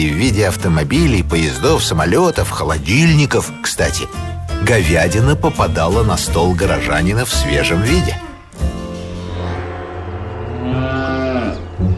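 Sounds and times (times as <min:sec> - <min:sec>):
speech: 0:00.0 - 0:08.2
cattle mooing: 0:09.2 - 0:11.9.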